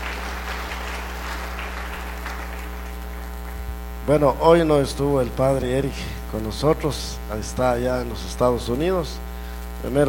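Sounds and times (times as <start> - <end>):
audience applause: 0.0 - 3.7
speech: 4.1 - 10.0.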